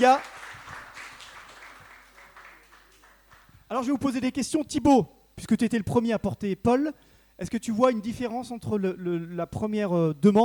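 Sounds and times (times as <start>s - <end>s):
speech: 0.0s - 0.3s, 3.7s - 10.4s
audience applause: 0.0s - 3.5s.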